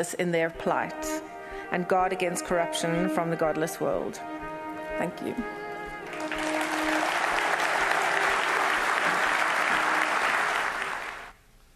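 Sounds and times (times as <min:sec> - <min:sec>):
speech: 0:00.0 - 0:04.4, 0:05.0 - 0:05.6
audience applauding a testimony: 0:06.0 - 0:11.4.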